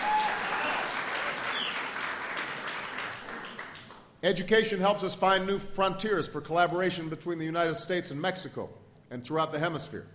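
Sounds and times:
audience applause: 0.0 - 4.0
speech: 4.2 - 10.1.

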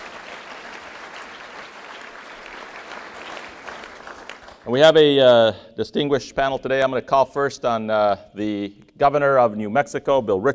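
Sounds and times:
audience applause: 0.0 - 4.7
speech: 4.7 - 10.5.

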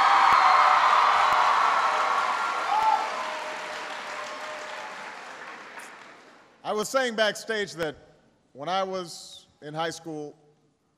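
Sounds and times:
crowd applause: 0.0 - 6.4
speech: 6.7 - 8.0, 8.6 - 10.4.

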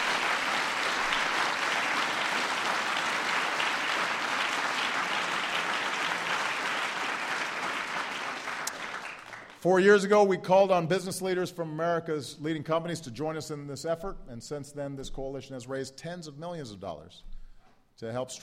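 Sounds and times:
audience applause: 0.0 - 9.6
speech: 9.6 - 17.3, 18.0 - 18.4.

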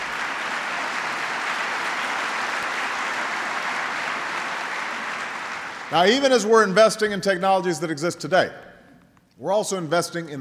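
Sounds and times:
audience applause: 0.0 - 6.5
speech: 5.9 - 8.6, 9.4 - 10.3.

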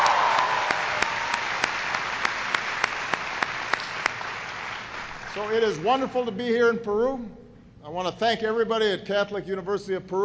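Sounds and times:
audience round of applause: 0.0 - 5.3
speech: 5.4 - 10.2.

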